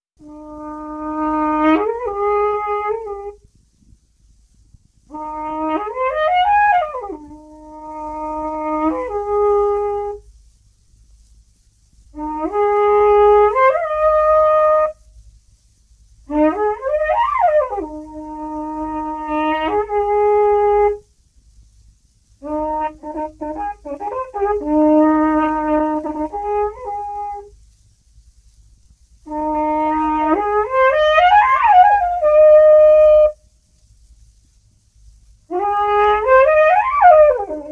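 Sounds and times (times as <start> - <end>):
horn solo: 0.2 - 3.6, 5.0 - 10.3, 12.1 - 15.0, 16.2 - 21.1, 22.4 - 27.5, 29.2 - 33.4, 35.5 - 37.7.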